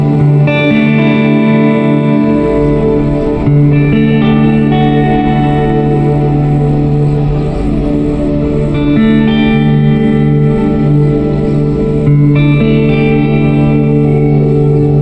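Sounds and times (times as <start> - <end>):
drone: 0.0 - 15.0.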